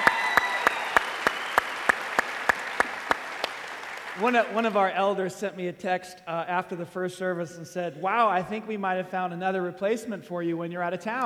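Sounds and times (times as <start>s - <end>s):
audience applauding to welcome a speaker's wife onto the stage: 0.0s - 5.0s
speech: 4.2s - 11.2s.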